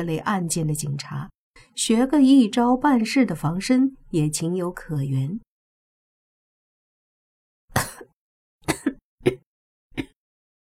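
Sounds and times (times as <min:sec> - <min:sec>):
speech: 0:00.0 - 0:05.5, 0:09.2 - 0:09.4
violent coughing: 0:07.7 - 0:09.4.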